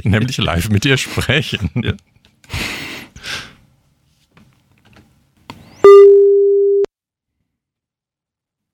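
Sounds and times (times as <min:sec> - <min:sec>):
speech: 0:00.0 - 0:02.6
studio telephone ringback tone: 0:05.8 - 0:06.9.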